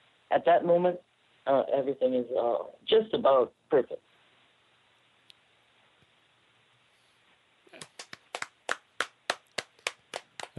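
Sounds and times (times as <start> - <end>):
speech: 0.3 - 4.1
people clapping: 7.7 - 10.5.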